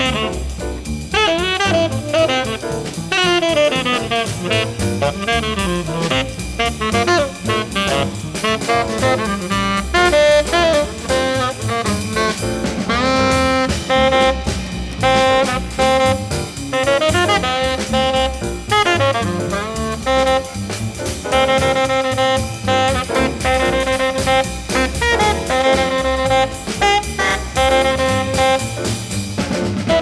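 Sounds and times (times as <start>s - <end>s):
jazz music: 0.0s - 29.9s.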